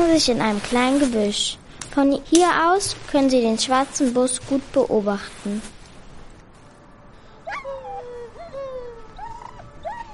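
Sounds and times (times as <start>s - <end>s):
speech: 0.1s - 5.8s
dogs whimpering inside a bus: 7.5s - 10.1s.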